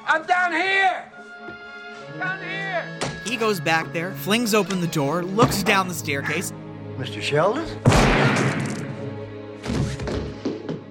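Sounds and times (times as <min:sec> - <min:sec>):
speech: 0:00.1 - 0:01.0, 0:02.2 - 0:08.7
shotgun blast: 0:07.8 - 0:09.0.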